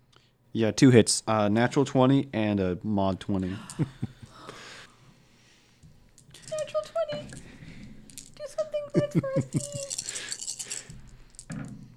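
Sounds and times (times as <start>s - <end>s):
speech: 0.5s - 4.2s, 9.0s - 9.9s
six dice rolled during a tabletop role-playing game: 6.1s - 11.7s.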